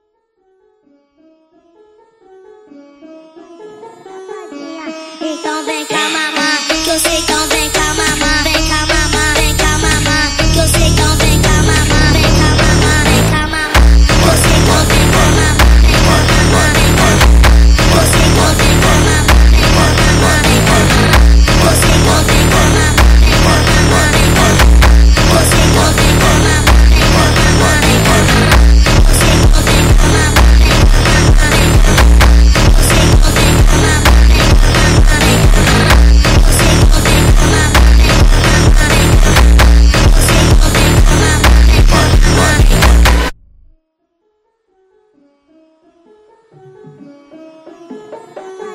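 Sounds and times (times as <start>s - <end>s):
Arabic funk music: 6.0s - 43.4s.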